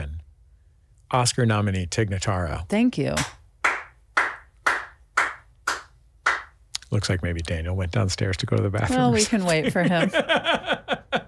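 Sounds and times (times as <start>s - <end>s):
speech: 1.1s - 3.4s, 6.9s - 11.2s
sparse clapping from a few people: 3.2s - 6.6s
laughter: 8.9s - 11.2s.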